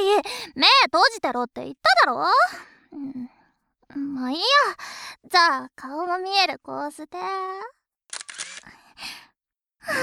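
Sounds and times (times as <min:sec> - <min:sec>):
speech: 0:00.2 - 0:07.8, 0:09.8 - 0:10.0
camera shutter clicks: 0:08.1 - 0:08.7.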